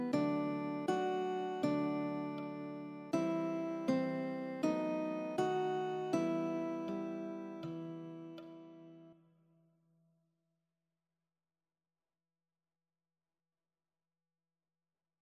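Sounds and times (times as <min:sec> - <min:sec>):
guitar: 0:00.0 - 0:09.1.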